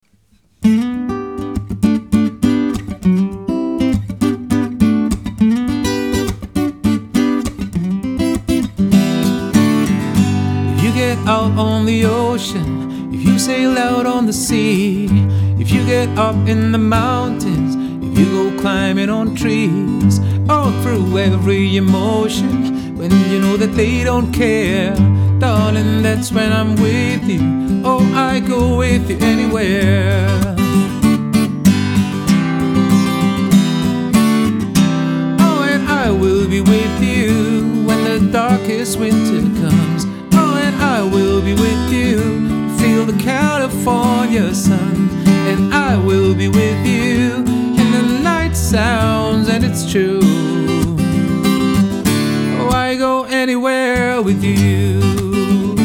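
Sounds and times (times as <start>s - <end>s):
unplugged solo: 0.0s - 55.8s.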